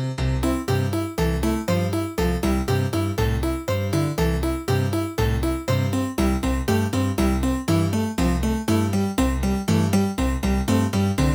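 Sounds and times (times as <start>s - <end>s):
Roland SC-88 sound module music: 0.2s - 11.3s.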